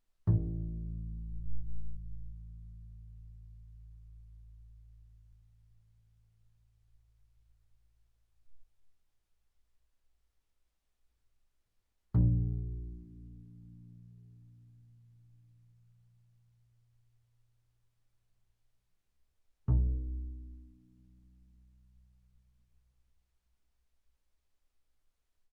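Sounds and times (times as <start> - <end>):
double bass pizzicato on the A string, fortissimo: 0.3 - 4.9, 12.2 - 15.2, 19.7 - 21.9.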